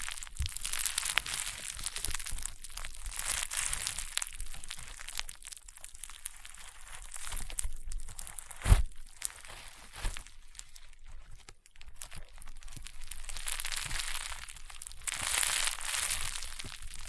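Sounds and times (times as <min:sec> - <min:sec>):
crunchy popping slime being squeezed and pressed: 0:00.0 - 0:17.0.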